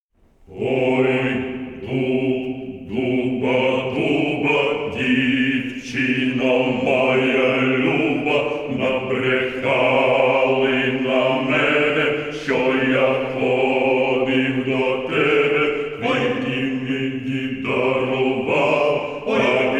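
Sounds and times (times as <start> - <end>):
male choir singing: 0.5 - 19.7.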